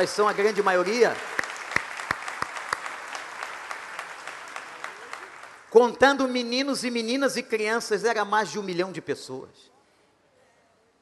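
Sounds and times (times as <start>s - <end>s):
speech: 0.0s - 1.4s, 5.7s - 9.7s
round of applause: 0.0s - 5.8s.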